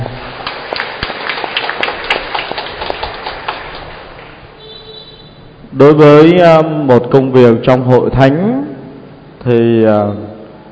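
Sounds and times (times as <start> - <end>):
audience applause: 0.0 - 4.5
speech: 5.8 - 8.6, 9.4 - 10.3.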